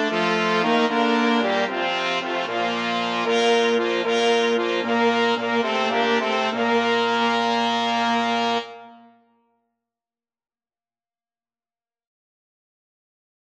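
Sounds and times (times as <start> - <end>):
brass quartet: 0.0 - 9.2.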